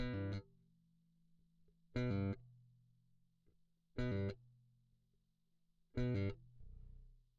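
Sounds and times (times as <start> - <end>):
bass: 0.0 - 0.6, 1.9 - 2.5, 4.0 - 4.5, 6.0 - 7.3.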